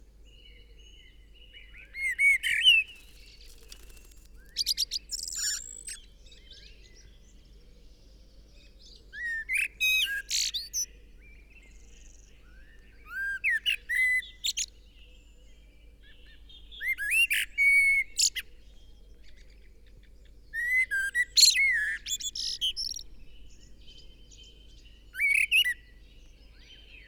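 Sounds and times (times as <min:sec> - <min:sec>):
Eurasian blackbird song: 0:00.4 - 0:07.3, 0:09.1 - 0:10.9, 0:11.7 - 0:14.7, 0:16.6 - 0:18.5, 0:20.5 - 0:27.0.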